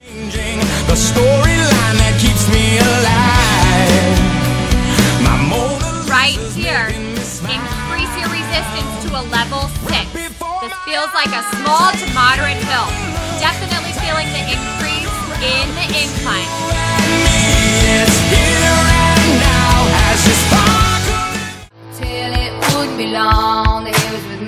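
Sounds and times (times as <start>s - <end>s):
rock music: 0.0s - 24.4s.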